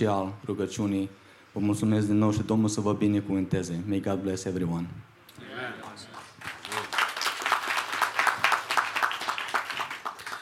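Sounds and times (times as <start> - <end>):
speech: 0.0 - 5.8
audience clapping: 5.8 - 10.4.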